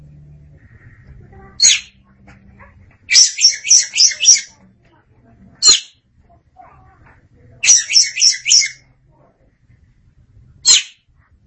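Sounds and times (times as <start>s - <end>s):
faint low background hum: 0.0s - 11.4s
Oriental magpie-robin sweet whistled song: 1.6s - 2.0s, 3.1s - 4.6s, 7.6s - 8.8s.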